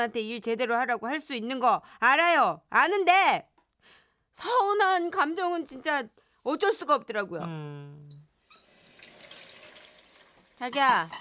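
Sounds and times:
speech: 0.0 - 8.2, 10.6 - 11.1
kitchen tap running while dishes are washed: 8.4 - 11.1.

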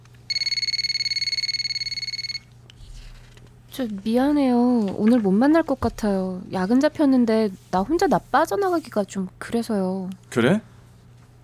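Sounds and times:
telephone ringing: 0.3 - 2.6
speech: 3.8 - 10.7.

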